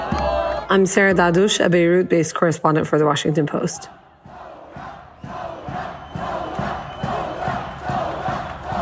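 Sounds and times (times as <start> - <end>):
speech: 0.7 - 4.0
protest crowd chanting: 3.5 - 8.7.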